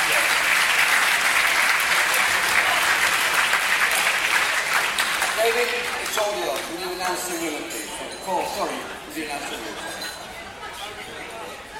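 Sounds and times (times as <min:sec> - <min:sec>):
applause: 0:00.0 - 0:07.4
speech: 0:05.5 - 0:10.0.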